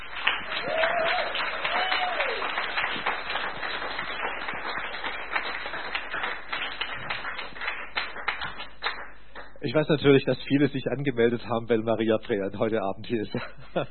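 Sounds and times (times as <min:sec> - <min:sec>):
audience applause: 0:00.0 - 0:09.5
speech: 0:09.6 - 0:13.9.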